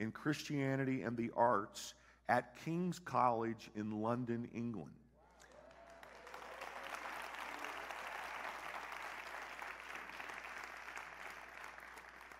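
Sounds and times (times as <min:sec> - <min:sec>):
speech: 0:00.0 - 0:05.0
audience applause: 0:05.4 - 0:12.3.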